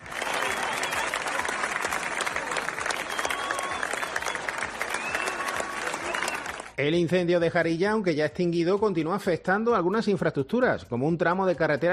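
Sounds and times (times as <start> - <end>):
neighbours applauding firefighting crews in Plasencia and Hervás: 0.0 - 6.8
speech: 6.8 - 11.9.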